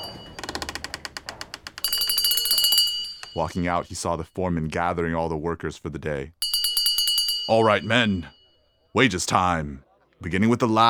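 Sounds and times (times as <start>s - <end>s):
bell chiming outside: 0.0s - 0.5s, 1.8s - 4.0s, 6.4s - 8.8s
speech: 3.4s - 6.4s, 7.5s - 10.8s.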